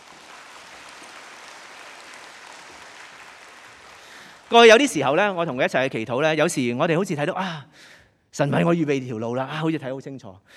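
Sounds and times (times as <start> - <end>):
audience applause: 0.0 - 5.0
speech: 4.5 - 10.5.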